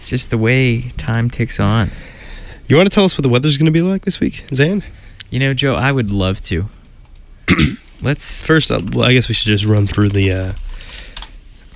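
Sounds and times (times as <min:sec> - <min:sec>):
speech: 0:00.1 - 0:02.1, 0:02.7 - 0:06.8, 0:07.5 - 0:11.0
computer keyboard typing: 0:09.6 - 0:11.7.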